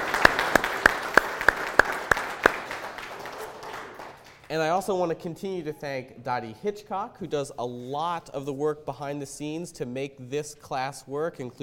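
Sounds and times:
audience applause: 0:00.0 - 0:04.7
speech: 0:04.5 - 0:11.6.

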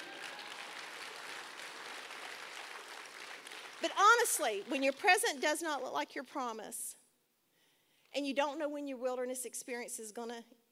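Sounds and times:
audience clapping: 0:00.0 - 0:05.2
speech: 0:03.8 - 0:07.0, 0:08.2 - 0:10.7.

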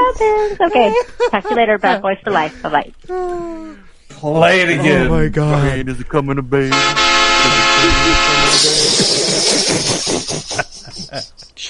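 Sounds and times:
laughter: 0:00.0 - 0:11.6
speech: 0:00.1 - 0:11.6
train horn sound effect: 0:06.7 - 0:08.8.

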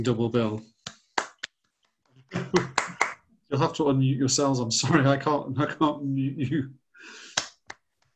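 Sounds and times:
speech: 0:00.0 - 0:00.8, 0:02.5 - 0:02.9, 0:03.5 - 0:07.2
scattered round of applause over video call: 0:02.4 - 0:03.2.

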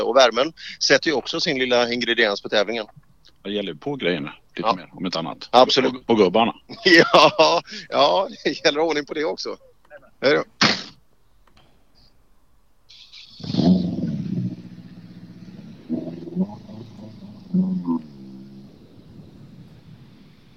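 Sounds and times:
speech: 0:00.1 - 0:10.6
laughter: 0:06.7 - 0:08.6
car engine idling and revving: 0:12.9 - 0:20.5.

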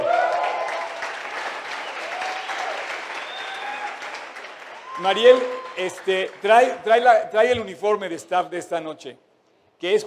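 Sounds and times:
audience applause: 0:00.0 - 0:06.8
speech: 0:05.0 - 0:09.2, 0:09.8 - 0:10.0.

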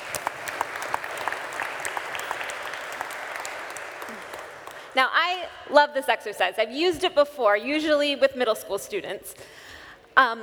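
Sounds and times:
audience applause: 0:00.0 - 0:05.0
speech: 0:05.0 - 0:09.6, 0:10.2 - 0:10.4.

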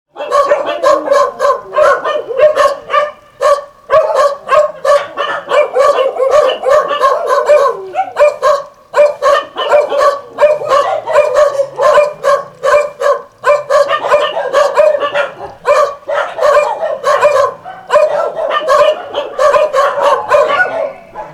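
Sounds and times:
dogs barking: 0:00.1 - 0:21.3.

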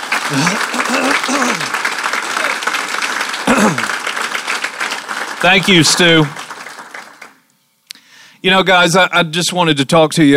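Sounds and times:
audience applause: 0:00.0 - 0:07.4
speech: 0:00.3 - 0:01.8, 0:05.4 - 0:06.4, 0:08.4 - 0:10.3.

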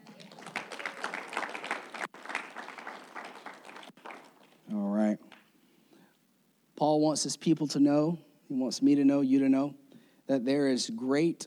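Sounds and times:
audience clapping: 0:00.0 - 0:04.7
speech: 0:06.9 - 0:11.4.

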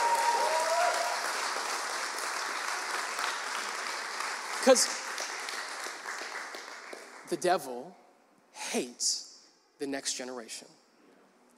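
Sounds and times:
church congregation clapping hands: 0:00.0 - 0:07.7
speech: 0:04.6 - 0:05.0, 0:07.3 - 0:08.0, 0:08.7 - 0:09.2, 0:09.8 - 0:10.8.

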